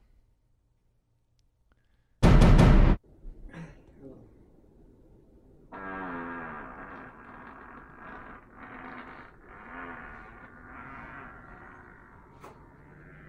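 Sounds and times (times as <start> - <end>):
fart: 5.7 - 13.2.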